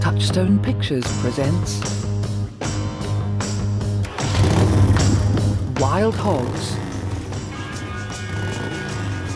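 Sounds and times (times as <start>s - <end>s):
speech: 0.2s - 2.1s, 5.9s - 6.8s
Harley-Davidson motorcycle revving and speeding out of a garage: 3.1s - 9.3s.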